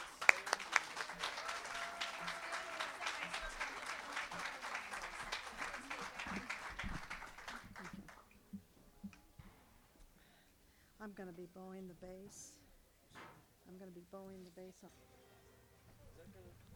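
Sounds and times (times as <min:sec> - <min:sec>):
audience applause welcoming a band onto the stage: 0:00.0 - 0:08.4
speech: 0:11.1 - 0:12.6, 0:13.8 - 0:15.1.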